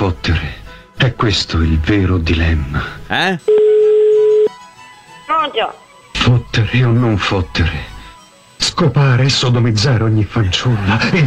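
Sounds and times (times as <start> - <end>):
speech: 0.0 - 3.6, 5.4 - 7.9, 8.6 - 11.2
telephone line tone for a prank call: 3.5 - 4.5
laughter: 10.6 - 11.2.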